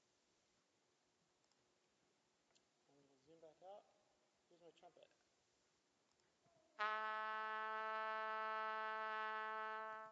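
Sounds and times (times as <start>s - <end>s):
speech: 2.9s - 5.2s
trumpet holding A below middle C at 220 hertz: 6.8s - 10.1s.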